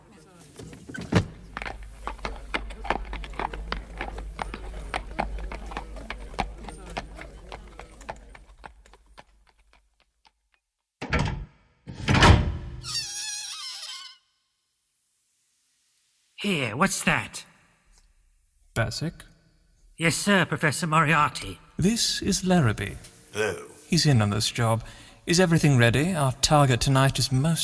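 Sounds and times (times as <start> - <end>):
horse-drawn cab hooves clip-clopping along Baker Street: 0.4 - 10.6
horse-drawn cab wheels rumbling: 0.9 - 9.2
speech: 16.4 - 17.5, 18.8 - 19.3, 20.0 - 27.6.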